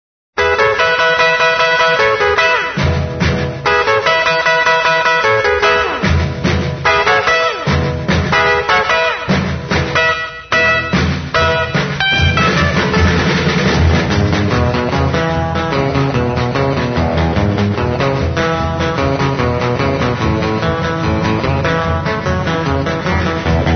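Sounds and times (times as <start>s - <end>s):
boogie guitar rumble: 0.4s - 23.7s.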